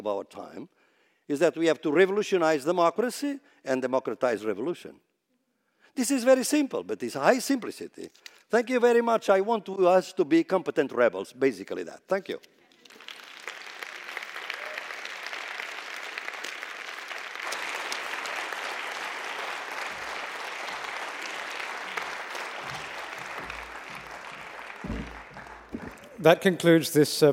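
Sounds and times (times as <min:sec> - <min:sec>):
speech: 0:00.0 - 0:05.1, 0:06.0 - 0:13.1, 0:26.2 - 0:27.3
audience applause: 0:12.8 - 0:26.4.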